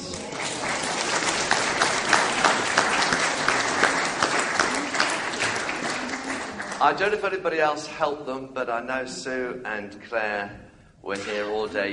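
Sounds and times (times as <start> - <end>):
audience applause: 0.0 - 7.1
speech: 6.8 - 11.9.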